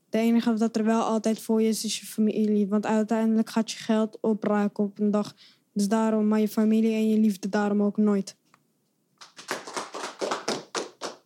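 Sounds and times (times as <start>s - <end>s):
speech: 0.1s - 8.4s
hand clapping: 9.2s - 11.2s.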